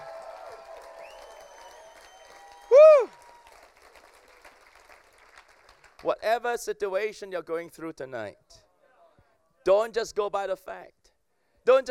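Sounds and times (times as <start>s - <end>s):
audience applause: 0.0s - 6.1s
speech: 6.0s - 8.5s, 9.6s - 11.0s, 11.6s - 11.9s.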